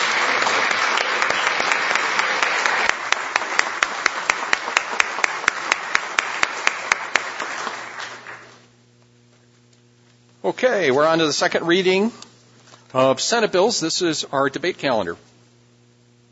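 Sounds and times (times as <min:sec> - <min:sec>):
audience applause: 0:00.0 - 0:08.6
speech: 0:10.5 - 0:12.2, 0:12.9 - 0:15.3.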